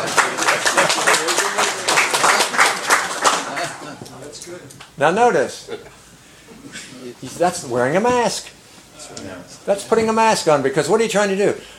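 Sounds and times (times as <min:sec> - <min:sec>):
crowd clapping: 0:00.0 - 0:04.6
speech: 0:05.0 - 0:05.8, 0:07.1 - 0:11.7.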